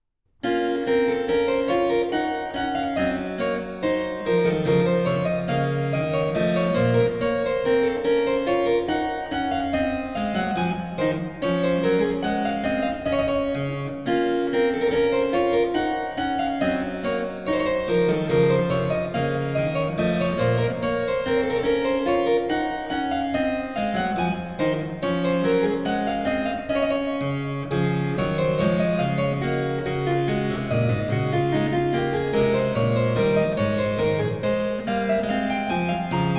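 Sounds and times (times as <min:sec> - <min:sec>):
keyboard minuet in B minor: 0:00.4 - 0:36.3.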